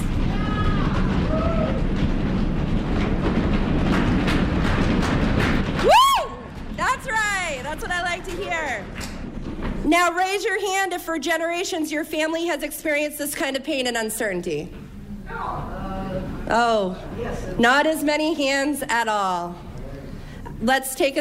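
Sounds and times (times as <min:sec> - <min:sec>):
audience stomping their feet: 0:00.0 - 0:09.9
audience cheering and whooping: 0:00.2 - 0:02.0, 0:05.8 - 0:06.7
speech: 0:09.9 - 0:15.7, 0:16.5 - 0:19.6, 0:20.6 - 0:21.1.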